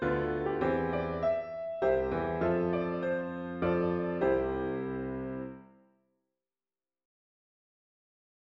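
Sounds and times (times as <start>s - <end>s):
solo piano: 0.0s - 5.9s.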